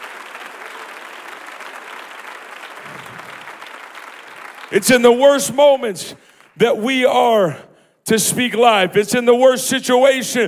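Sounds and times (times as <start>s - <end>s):
audience clapping hands: 0.0s - 7.2s
speech: 4.7s - 10.4s.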